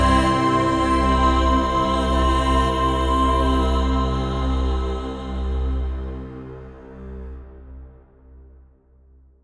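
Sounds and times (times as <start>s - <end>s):
strings playing: 0.0s - 3.6s
emotional choir singing: 0.0s - 6.9s.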